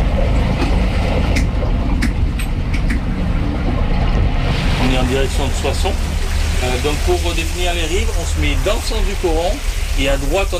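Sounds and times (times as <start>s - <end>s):
solar catamaran cruising on a river: 0.0s - 10.5s
speech: 5.2s - 10.5s.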